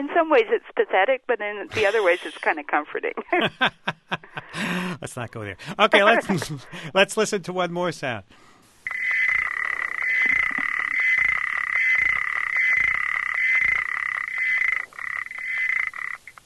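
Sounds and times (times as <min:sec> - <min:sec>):
speech: 0:00.0 - 0:08.5
frog trilling: 0:01.8 - 0:02.5, 0:08.8 - 0:16.4
laughter: 0:03.2 - 0:05.0.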